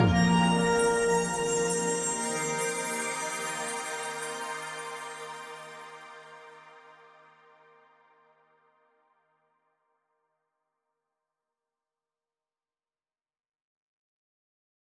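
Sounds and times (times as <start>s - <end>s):
jingle ping: 0.0s - 5.5s.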